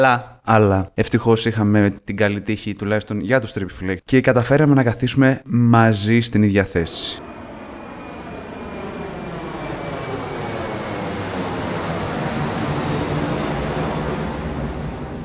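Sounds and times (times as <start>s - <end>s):
speech: 0.0s - 7.2s
airplane engine during flight: 7.1s - 15.2s.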